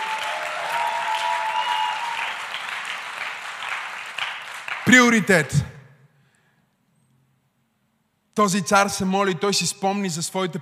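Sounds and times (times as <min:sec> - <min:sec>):
audience applause: 0:00.0 - 0:05.2
speech: 0:04.9 - 0:05.8, 0:08.4 - 0:10.6.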